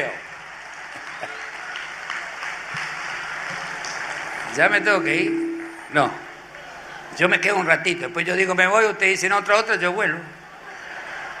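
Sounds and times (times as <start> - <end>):
audience applause: 0.0 - 4.8
speech: 4.6 - 6.2, 7.2 - 10.4.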